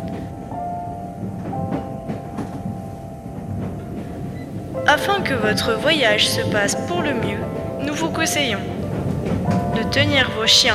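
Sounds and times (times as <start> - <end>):
train running on rails: 0.0 - 10.7
speech: 5.0 - 8.8, 9.9 - 10.7.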